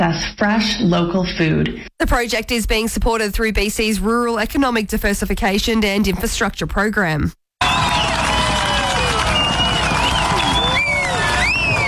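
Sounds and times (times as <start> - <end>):
speech: 0.0 - 7.9
crowd of hundreds at a FIFA World Cup watch party at Lakeside Park in Nelson: 7.6 - 11.8.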